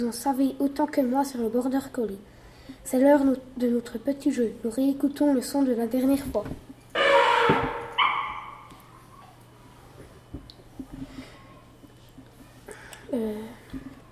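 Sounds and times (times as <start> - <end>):
speech: 0.0 - 6.7
elephant call: 6.9 - 8.7.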